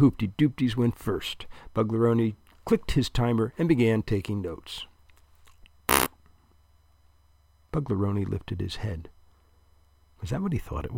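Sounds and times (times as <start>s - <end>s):
speech: 0.0s - 4.9s, 7.7s - 9.1s, 10.2s - 10.9s
fart: 5.9s - 6.2s.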